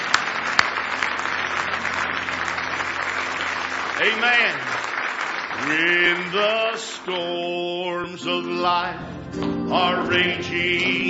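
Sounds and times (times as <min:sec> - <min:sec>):
crowd clapping in praise: 0:00.0 - 0:07.5
speech: 0:04.0 - 0:04.9, 0:05.6 - 0:11.0.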